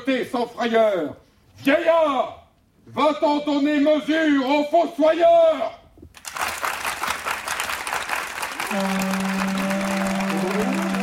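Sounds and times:
speech: 0.0 - 5.8, 8.7 - 9.2
theatre audience applauding: 6.2 - 11.0.

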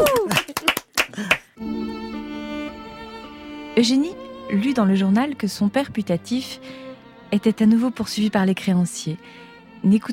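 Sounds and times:
people clapping: 0.0 - 1.6
speech: 3.8 - 10.1.

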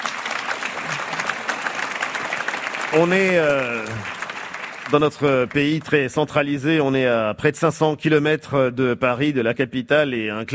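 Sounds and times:
audience applause at a live face-to-face debate event in Saint-Brieuc: 0.0 - 6.8
speech: 2.9 - 4.2, 4.9 - 10.5.

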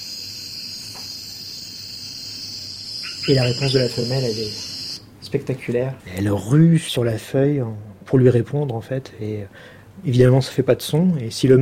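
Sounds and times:
New Guinea forest ambience with insects: 0.0 - 5.1
speech: 3.2 - 4.7, 5.3 - 11.6.

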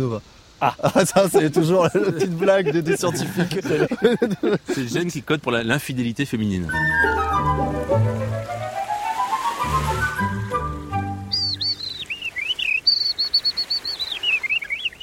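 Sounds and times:
speech: 0.0 - 7.2
laughter: 0.6 - 5.0
skylark song: 6.7 - 15.0.

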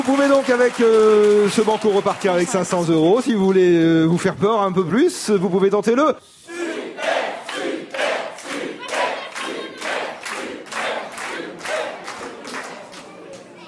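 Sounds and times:
audience applauding warmly: 0.0 - 3.8, 7.4 - 13.1
speech: 0.0 - 6.6.

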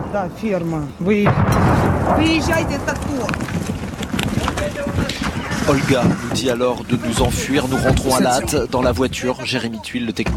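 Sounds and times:
artillery shelling: 0.0 - 6.2
speech: 0.1 - 3.8, 4.6 - 10.3.

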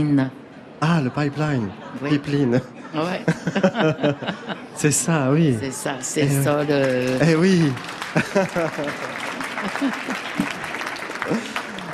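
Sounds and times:
speech: 0.0 - 10.2
laughter: 0.8 - 5.5, 6.2 - 11.9
audience applause: 6.2 - 11.9
voices rising above clapping: 6.2 - 11.9.

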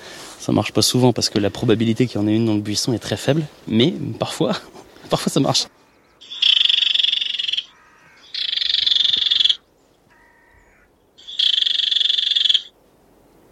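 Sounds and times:
speech: 0.4 - 5.8
barred warbler call playback: 5.7 - 12.8.

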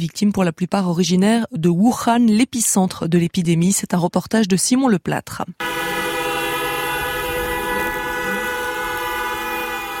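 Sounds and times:
speech: 0.0 - 6.0
car horns: 5.6 - 9.9
memorial sirens: 5.6 - 9.9.

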